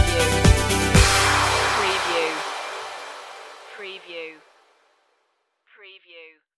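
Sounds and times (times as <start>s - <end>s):
rising musical stinger: 0.2s - 4.8s.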